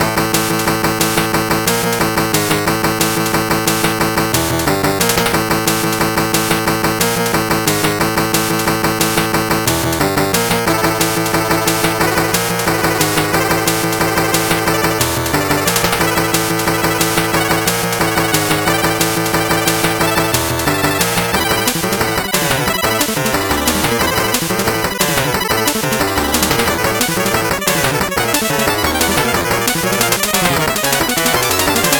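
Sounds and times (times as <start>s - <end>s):
8-bit background music: 0.0s - 31.9s.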